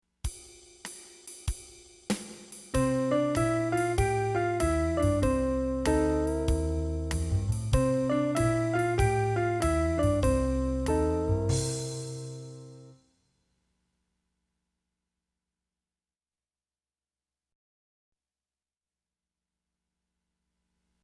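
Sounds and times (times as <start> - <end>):
swing rhythm: 0.3 - 12.9.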